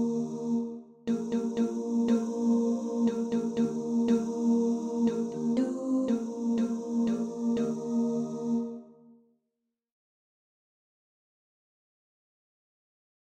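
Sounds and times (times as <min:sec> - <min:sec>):
tenor singing: 0:00.0 - 0:08.8.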